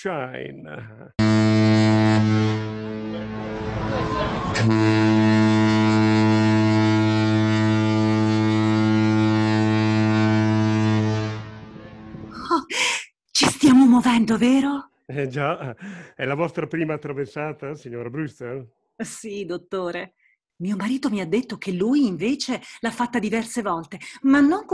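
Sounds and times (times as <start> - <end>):
speech: 0.0 - 1.2, 1.9 - 2.7, 4.6 - 5.1, 14.1 - 24.7
steamship departure whistle: 1.2 - 12.1
laughter: 3.8 - 4.6, 15.1 - 18.6.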